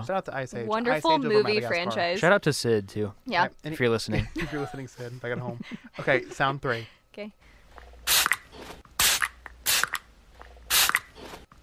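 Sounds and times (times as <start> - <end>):
speech: 0.0 - 7.5
perfume bottle spraying: 8.1 - 10.0, 10.7 - 11.4.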